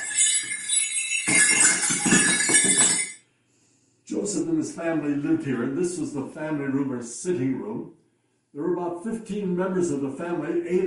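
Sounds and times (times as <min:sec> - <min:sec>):
sleigh bells jingling as taken off shoulders: 0:00.0 - 0:03.2
speech: 0:04.3 - 0:10.8.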